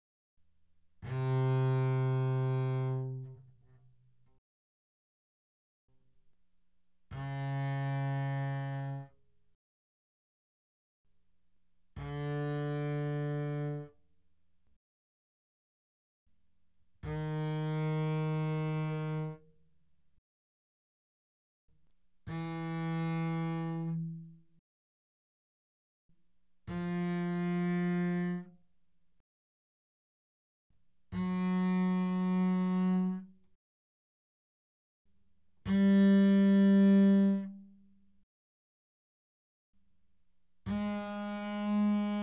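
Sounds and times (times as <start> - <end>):
bowed double bass played fortissimo on the G string: 1.0 - 3.7, 7.1 - 9.1, 12.0 - 13.9, 17.0 - 19.4, 22.3 - 24.4, 26.7 - 28.5, 31.1 - 33.3, 35.6 - 37.7, 40.7 - 42.2.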